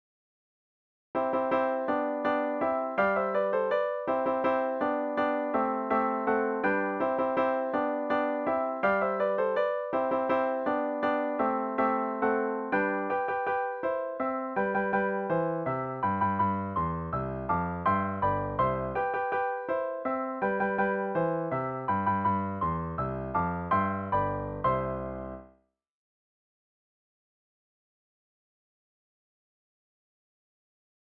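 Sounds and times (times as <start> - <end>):
march for piano: 1.2 - 25.6.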